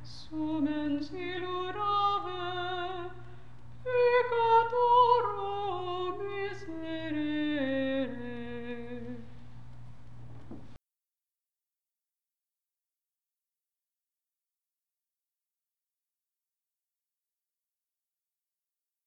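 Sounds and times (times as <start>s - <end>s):
Marian antiphon chant: 0.0s - 3.2s, 3.8s - 9.4s.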